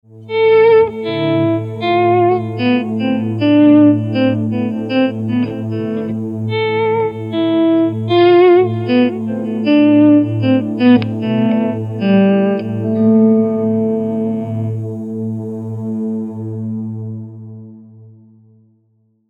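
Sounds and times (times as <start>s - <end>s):
A minor scale variation: 0.3s - 15.4s.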